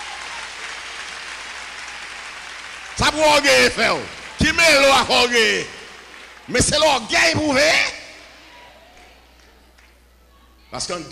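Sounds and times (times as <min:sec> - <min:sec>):
church congregation clapping for Jesus Christ: 0:00.0 - 0:07.7
speech: 0:03.0 - 0:05.8, 0:06.5 - 0:08.0, 0:10.7 - 0:11.0.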